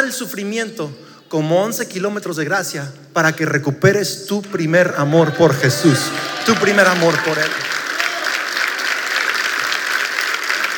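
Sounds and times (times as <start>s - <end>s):
speech: 0.0s - 7.8s
applause: 5.8s - 10.7s.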